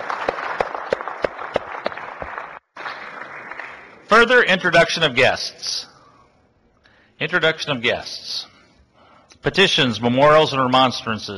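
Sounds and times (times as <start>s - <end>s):
applause welcoming guests in a Senate chamber: 0.0s - 4.2s
speech: 4.1s - 5.9s, 7.2s - 8.5s, 9.4s - 11.3s.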